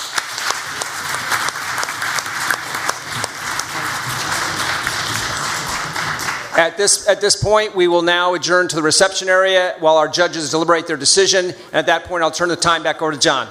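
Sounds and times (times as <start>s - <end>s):
audience applause: 0.0s - 6.7s
speech: 6.6s - 13.4s.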